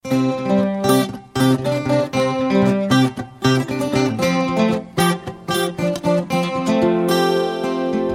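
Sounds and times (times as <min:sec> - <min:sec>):
acoustic guitar: 0:00.0 - 0:08.1.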